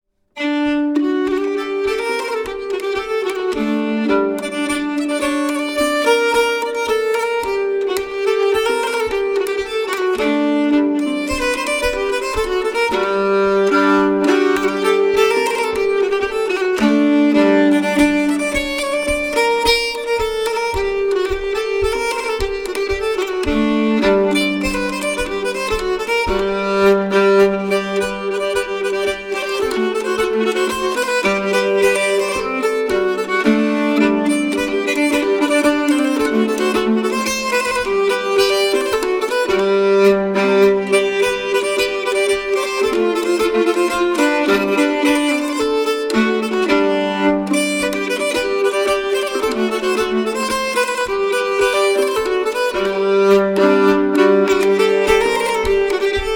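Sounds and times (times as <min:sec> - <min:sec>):
polska dance tune: 0:00.5 - 0:56.3.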